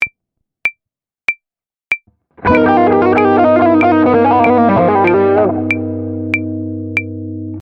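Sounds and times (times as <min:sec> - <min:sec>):
musical lick: 0:02.5 - 0:07.1.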